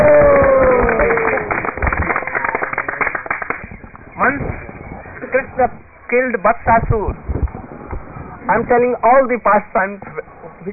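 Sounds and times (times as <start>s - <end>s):
several people clapping their hands: 0.0s - 4.0s
speech: 5.6s - 7.3s, 8.5s - 10.7s.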